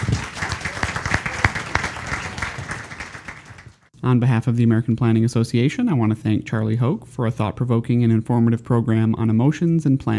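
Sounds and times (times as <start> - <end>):
audience applause: 0.0 - 3.9
speech: 4.0 - 10.1.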